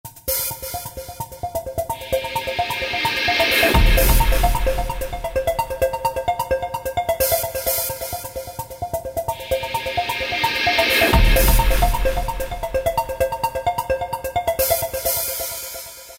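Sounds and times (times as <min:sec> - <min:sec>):
deep space electronic music on Korg ES-1: 0:00.2 - 0:16.1.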